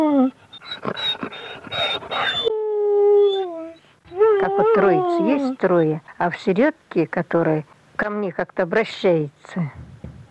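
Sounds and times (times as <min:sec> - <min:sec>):
small dog whining: 0:00.2 - 0:02.6, 0:03.1 - 0:05.6
speech: 0:05.1 - 0:10.2.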